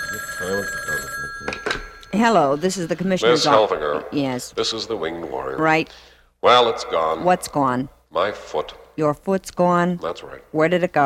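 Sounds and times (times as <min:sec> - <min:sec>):
telephone ringing for a call to a police commissioner's office: 0:00.0 - 0:04.3
speech: 0:00.4 - 0:01.2, 0:02.2 - 0:11.0.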